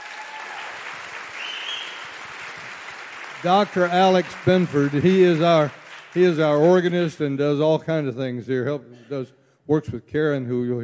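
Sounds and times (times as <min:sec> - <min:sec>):
audience applause: 0:00.0 - 0:07.2
speech: 0:03.4 - 0:10.8.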